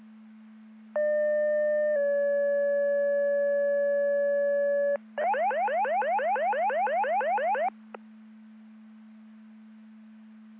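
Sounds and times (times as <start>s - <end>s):
siren: 1.0s - 7.7s.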